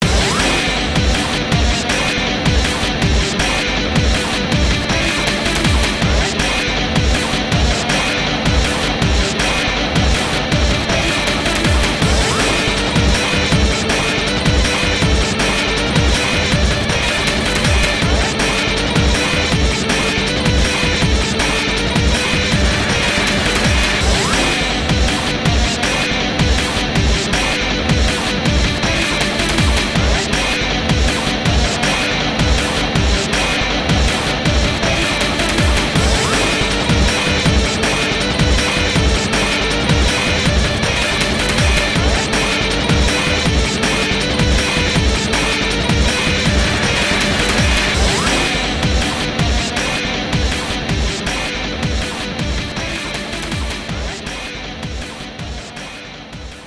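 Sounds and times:
sea battle middle boss background game music: 0:00.0 - 0:56.6.

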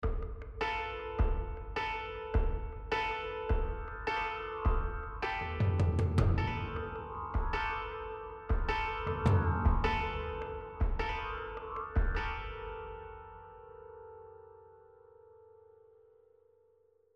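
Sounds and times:
rage combat music: 0:01.2 - 0:13.3.

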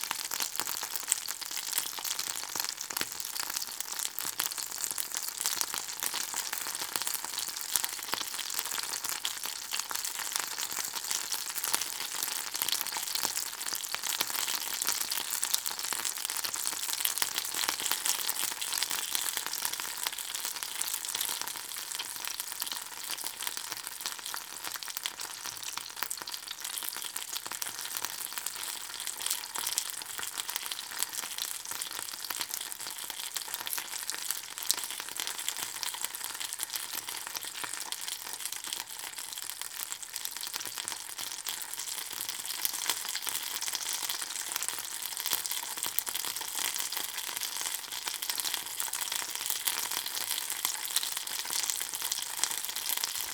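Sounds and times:
slow food frying: 0:00.0 - 0:53.3.

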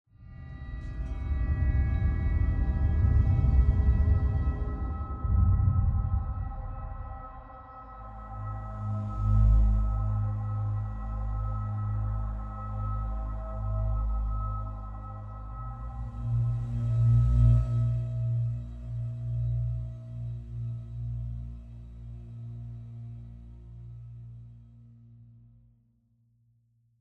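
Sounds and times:
dark scary exploration mood music: 0:00.3 - 0:25.0.

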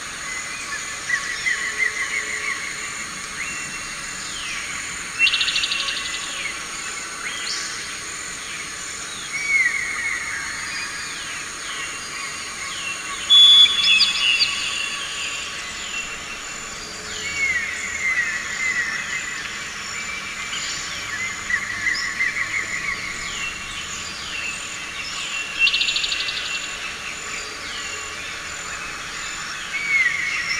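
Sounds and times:
jungle ambience: 0:00.0 - 0:30.5.

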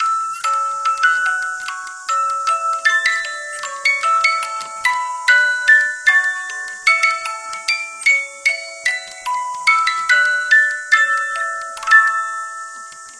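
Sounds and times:
music box: 0:00.0 - 0:13.1.

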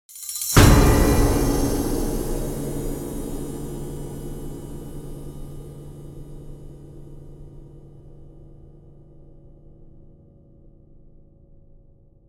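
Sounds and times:
string instrument: 0:00.1 - 0:06.6.

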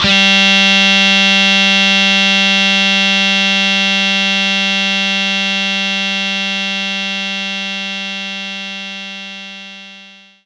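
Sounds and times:
distortion guitar playing G3 note: 0:00.0 - 0:10.2.

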